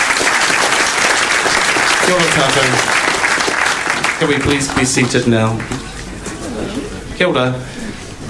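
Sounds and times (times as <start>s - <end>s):
crowd clapping: 0.0s - 6.5s
speech: 2.1s - 3.0s, 4.2s - 5.8s, 6.6s - 7.8s.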